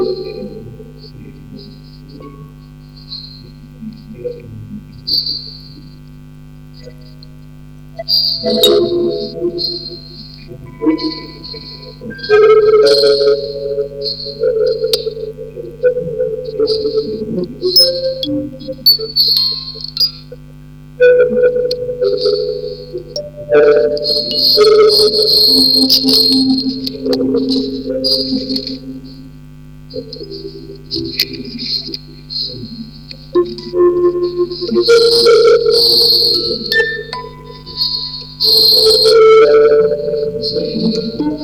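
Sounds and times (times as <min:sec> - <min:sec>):
double mono vocoder recording: 0:00.0 - 0:41.4
tape machine: 0:07.9 - 0:15.1, 0:21.0 - 0:41.4
quartet of music boxes playing: 0:08.2 - 0:15.1, 0:17.7 - 0:20.2, 0:21.2 - 0:29.3, 0:33.4 - 0:41.4.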